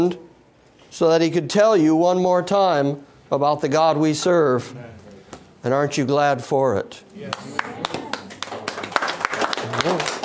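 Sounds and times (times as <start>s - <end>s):
speech: 0.0s - 0.2s, 0.9s - 5.0s, 5.6s - 7.9s
weak audience applause: 7.2s - 10.2s.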